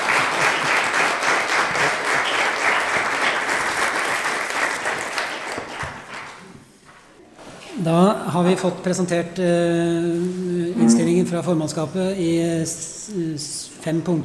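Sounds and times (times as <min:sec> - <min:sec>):
crowd applauding: 0:00.0 - 0:06.4
speech: 0:07.9 - 0:14.2.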